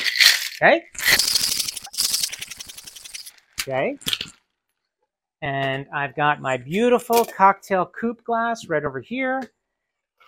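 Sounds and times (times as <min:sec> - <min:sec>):
cocktail shaker with ice vigorously shaken: 0:00.0 - 0:03.4
speech: 0:00.6 - 0:01.3, 0:03.6 - 0:04.3, 0:05.4 - 0:09.6.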